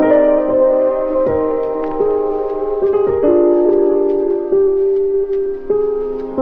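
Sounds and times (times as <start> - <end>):
sad music: 0.0 - 6.4.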